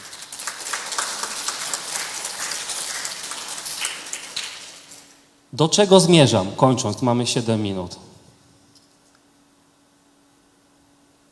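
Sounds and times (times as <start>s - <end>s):
audience applause: 0.0s - 5.2s
speech: 5.5s - 8.0s.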